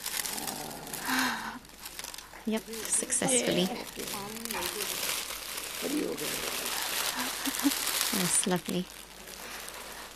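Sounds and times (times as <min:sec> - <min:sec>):
crinkly wrapping crinkling as flowers are unwrapped: 0:00.0 - 0:10.1
speech: 0:02.4 - 0:05.2, 0:05.8 - 0:09.1
people talking quietly: 0:02.5 - 0:05.2, 0:05.8 - 0:08.8.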